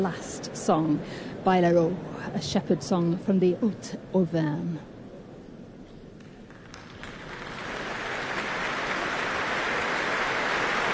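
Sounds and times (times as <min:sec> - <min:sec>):
speech: 0:00.0 - 0:04.9
concert hall audience applause at the Royal Albert Hall: 0:06.5 - 0:10.9.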